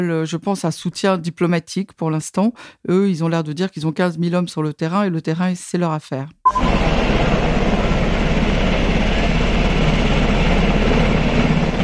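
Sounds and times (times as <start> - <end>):
speech: 0.0 - 7.5
helicopter at the Polish border at Kuznica: 6.6 - 11.8.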